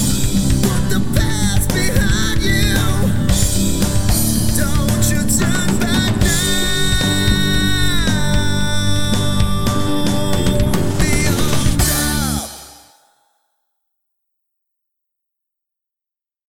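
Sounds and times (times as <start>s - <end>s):
acoustic harmony karaoke music: 0.0s - 13.0s.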